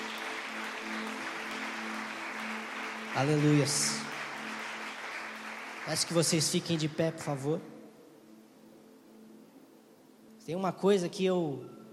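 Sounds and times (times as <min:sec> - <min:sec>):
audience applauding: 0:00.0 - 0:07.0
speech: 0:03.2 - 0:04.1, 0:05.9 - 0:07.7, 0:10.5 - 0:11.8.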